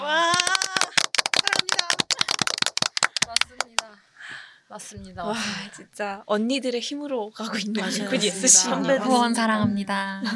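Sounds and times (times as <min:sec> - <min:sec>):
small group clapping hands: 0:00.0 - 0:04.0
speech: 0:04.7 - 0:10.3.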